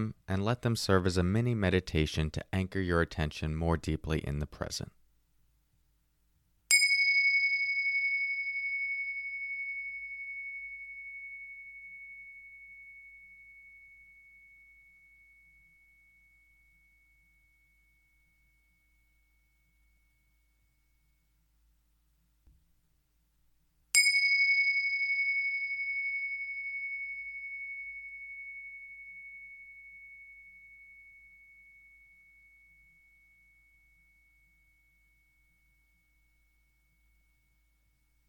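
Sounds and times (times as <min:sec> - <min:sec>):
speech: 0:00.0 - 0:05.0
meditation bell ringing: 0:06.7 - 0:21.4, 0:23.9 - 0:38.2.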